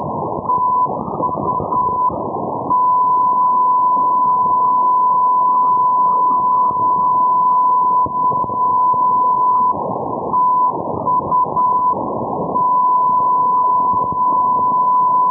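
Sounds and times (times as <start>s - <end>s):
NDB Tuzla TU-445 radio beacon signal: 0.4s - 15.2s.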